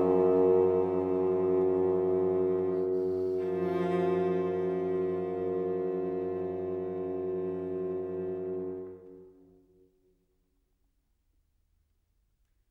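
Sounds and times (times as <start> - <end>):
bassoon playing an andante: 0.0 - 9.9
cello playing an andante: 0.0 - 10.0.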